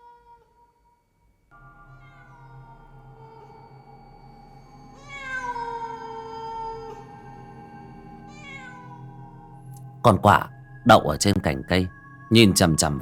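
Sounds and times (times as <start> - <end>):
cat meowing: 2.0 - 3.5, 5.0 - 7.2, 8.3 - 9.4
speech: 10.0 - 13.0.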